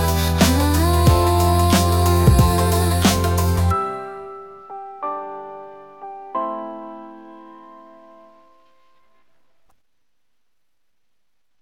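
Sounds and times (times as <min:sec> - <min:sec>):
easy pop music in F: 0:00.0 - 0:07.7.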